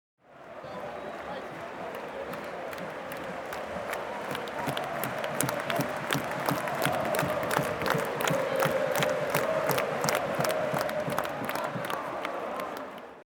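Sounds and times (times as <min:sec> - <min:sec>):
stadium fans: 0:00.2 - 0:13.2
stadium fans clapping: 0:00.4 - 0:13.2.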